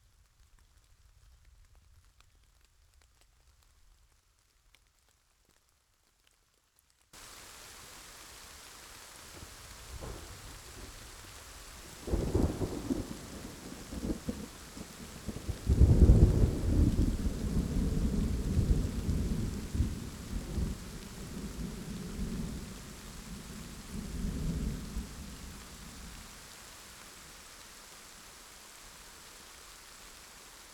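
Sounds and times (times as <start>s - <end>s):
rain: 0.0s - 30.7s
thunder: 9.4s - 22.8s.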